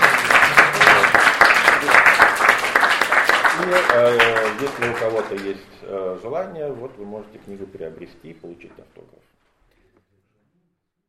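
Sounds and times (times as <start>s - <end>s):
audience applause: 0.0s - 5.6s
speech: 3.7s - 9.3s.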